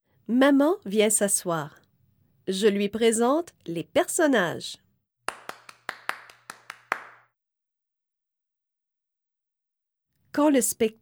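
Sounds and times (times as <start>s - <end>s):
speech: 0.3s - 1.8s, 2.5s - 4.8s, 10.4s - 11.0s
hands clapping: 5.3s - 7.3s.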